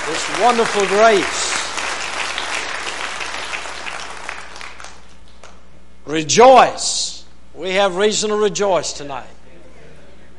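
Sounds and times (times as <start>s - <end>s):
audience applauding: 0.0s - 5.4s
speech: 0.1s - 1.6s, 6.1s - 9.4s.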